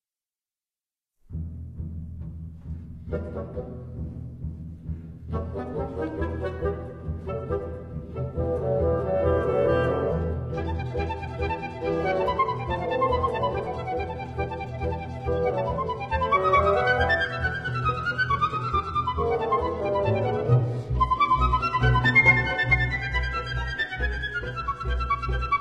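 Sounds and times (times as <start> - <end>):
piccolo concerto: 5.3 - 25.5.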